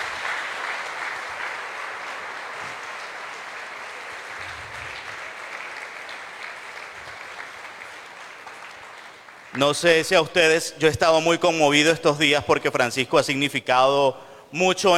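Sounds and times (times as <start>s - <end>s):
audience applause: 0.0s - 9.9s
speech: 9.6s - 14.9s.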